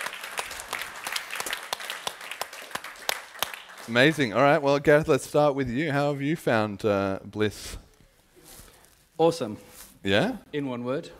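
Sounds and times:
audience applause: 0.0s - 4.6s
speech: 3.9s - 7.8s, 9.2s - 11.1s.

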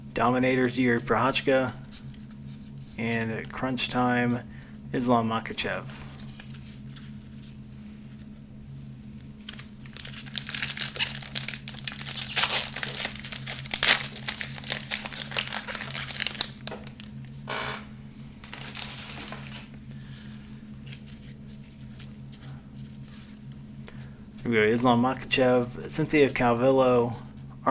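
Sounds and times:
steady low hum: 0.0s - 27.6s
speech: 0.2s - 1.8s, 3.0s - 6.0s, 24.5s - 27.6s
foil trading card pack wrapper crinkling and ripping open: 9.4s - 17.2s, 18.4s - 23.4s.

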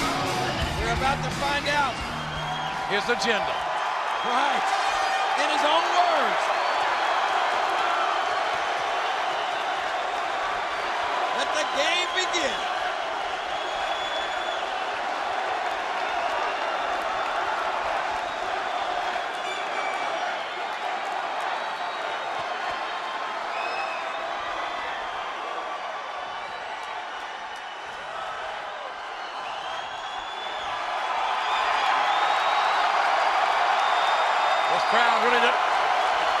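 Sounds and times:
large crowd of fans cheering: 0.0s - 36.3s
speech: 0.9s - 2.1s, 2.9s - 3.6s, 4.2s - 4.8s, 5.4s - 6.5s
whistles and shouts: 0.9s - 7.0s, 10.7s - 15.0s, 18.2s - 36.3s.

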